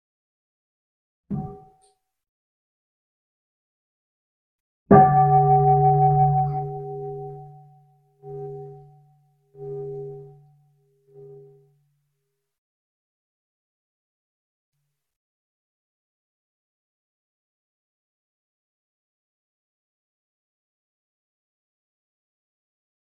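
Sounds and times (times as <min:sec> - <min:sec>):
bell ringing: 0:04.9 - 0:07.7.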